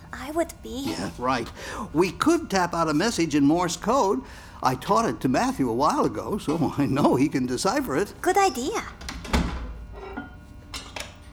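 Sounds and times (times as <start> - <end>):
speech: 0.1 - 9.0
heavy basement door thudding shut: 8.9 - 9.9.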